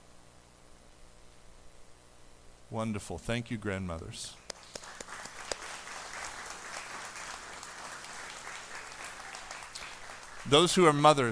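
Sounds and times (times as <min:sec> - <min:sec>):
speech: 0:02.7 - 0:04.4, 0:10.5 - 0:11.3
audience clapping: 0:04.5 - 0:11.3.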